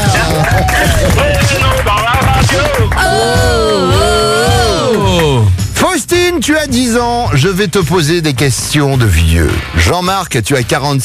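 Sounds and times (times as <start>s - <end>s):
audience applause: 0.0s - 5.5s
speech: 6.4s - 11.0s.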